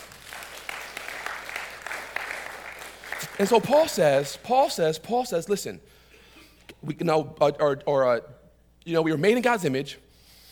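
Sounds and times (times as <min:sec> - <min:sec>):
audience applauding: 0:00.0 - 0:04.3
speech: 0:03.4 - 0:06.0, 0:06.8 - 0:10.0.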